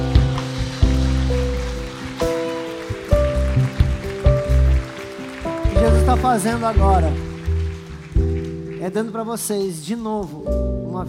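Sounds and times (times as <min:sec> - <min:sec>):
audience applauding: 0:00.0 - 0:09.6
speech: 0:06.2 - 0:07.3, 0:08.8 - 0:11.0.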